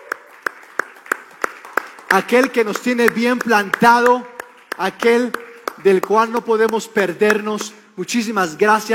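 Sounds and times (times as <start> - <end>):
audience applause: 0.0 - 6.4
speech: 2.1 - 8.9.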